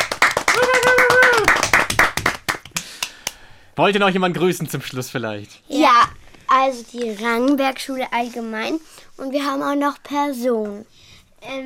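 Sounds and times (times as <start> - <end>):
studio audience applause: 0.0 - 3.4
speech: 3.8 - 11.6.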